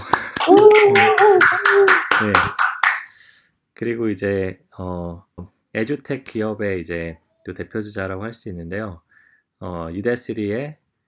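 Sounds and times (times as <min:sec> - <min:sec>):
applause welcoming a guest: 0:00.0 - 0:03.1
speech: 0:00.6 - 0:02.6, 0:03.8 - 0:09.0, 0:09.6 - 0:10.8.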